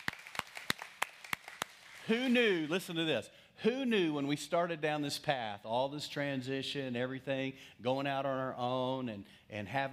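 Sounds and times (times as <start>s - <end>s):
audience clapping: 0.0s - 2.7s
speech: 2.1s - 9.9s.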